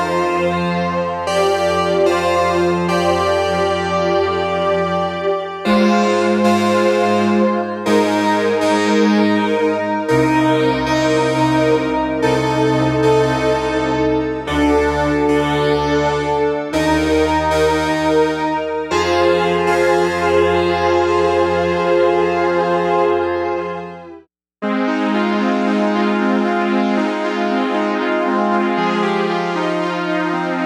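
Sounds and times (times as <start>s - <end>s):
PS3300 polyphonic synth and pads: 0.0s - 30.6s.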